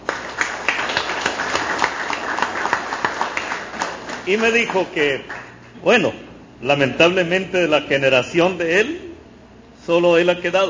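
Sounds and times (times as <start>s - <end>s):
audience applause: 0.0s - 5.6s
speech: 4.2s - 9.1s, 9.8s - 10.6s.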